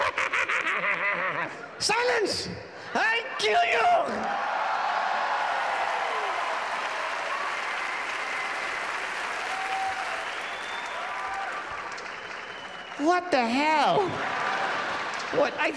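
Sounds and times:
laughter: 0.0s - 1.6s
speech: 1.8s - 4.6s, 13.0s - 14.4s, 15.3s - 15.7s
live comedy crowd in Abu Dhabi whooping: 4.2s - 13.0s, 14.0s - 15.2s
live comedy crowd in Abu Dhabi applauding: 4.3s - 15.7s.

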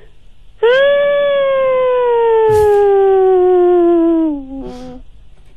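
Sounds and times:
person imitating a forceful whale sound: 0.6s - 5.0s.

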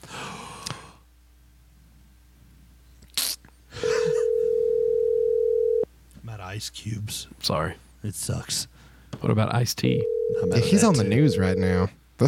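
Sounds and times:
phone call ringing tone: 3.8s - 5.8s, 9.9s - 11.8s
speech: 6.6s - 12.2s.

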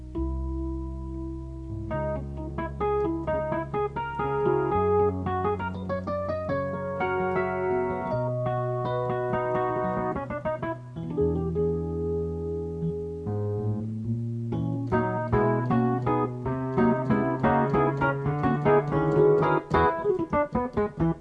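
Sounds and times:
Rhodes electric piano sketch: 0.0s - 21.1s.

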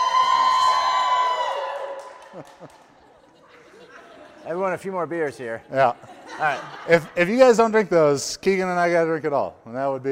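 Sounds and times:
live audience cheering: 0.0s - 2.8s
laughter: 2.0s - 8.0s
speech: 2.4s - 2.9s, 4.4s - 10.0s.

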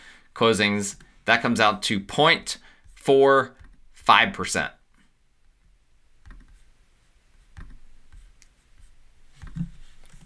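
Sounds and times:
speech: 0.4s - 4.8s
pen writing down numbers: 7.3s - 10.2s.

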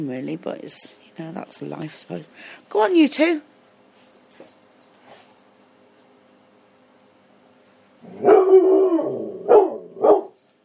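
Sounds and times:
speech: 0.0s - 3.5s
dog barking: 8.1s - 10.4s.

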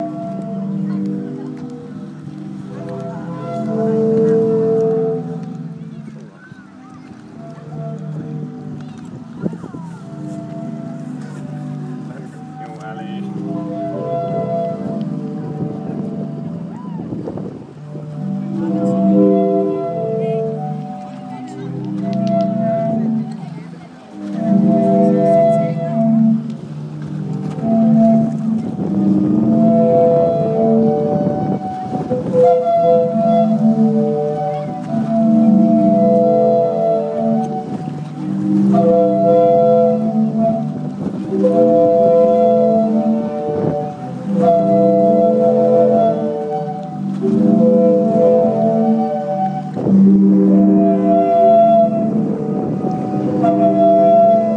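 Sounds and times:
sea organ in Zadar Croatia: 0.0s - 54.5s.

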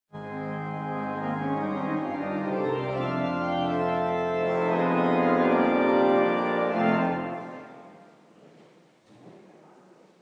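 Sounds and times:
Christmas morning organ interlude: 0.1s - 8.1s.

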